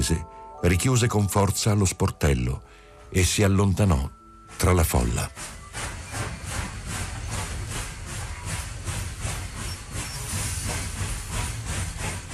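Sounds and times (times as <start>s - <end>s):
speech: 0.0s - 5.6s
steam train starting to move: 4.5s - 12.3s.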